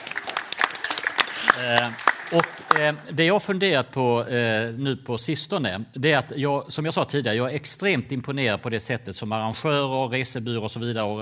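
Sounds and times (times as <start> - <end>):
audience applause: 0.0 - 3.1
speech: 1.6 - 11.2.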